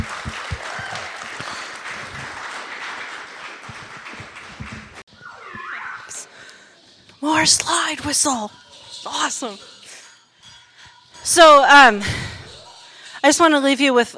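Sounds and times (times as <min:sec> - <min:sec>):
audience hand clapping: 0:00.0 - 0:05.0
speech: 0:07.2 - 0:09.7, 0:11.3 - 0:12.2, 0:13.2 - 0:14.1.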